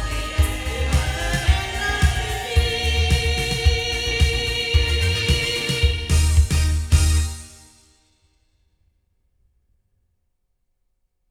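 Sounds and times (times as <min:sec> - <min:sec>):
loudspeakers: 0:00.0 - 0:07.4.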